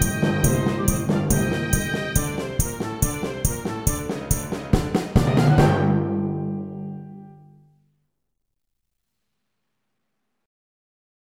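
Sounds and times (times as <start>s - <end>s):
orchestra: 0.0s - 7.7s.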